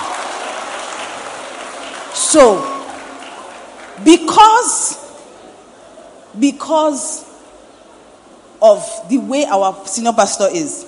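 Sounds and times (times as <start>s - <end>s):
audience clapping: 0.0s - 4.4s
speech: 2.3s - 2.7s, 4.0s - 5.1s, 6.3s - 7.3s, 8.6s - 10.8s.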